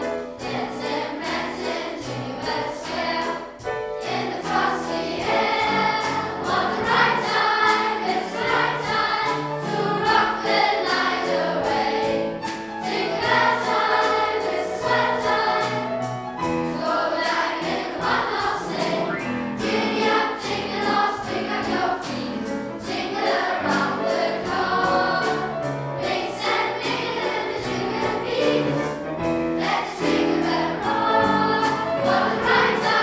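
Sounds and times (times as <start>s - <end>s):
youth chamber choir singing a Christmas song at a Christmas concert: 0.0s - 33.0s.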